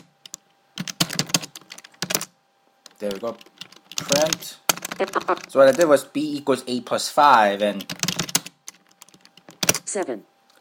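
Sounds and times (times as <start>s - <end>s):
typing on a computer keyboard: 0.0s - 2.3s, 2.9s - 6.0s, 7.6s - 9.9s
speech: 3.0s - 8.3s, 10.0s - 10.3s.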